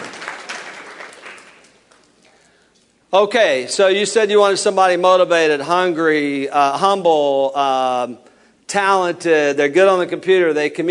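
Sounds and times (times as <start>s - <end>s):
audience hand clapping: 0.0s - 2.4s
speech: 3.1s - 10.8s.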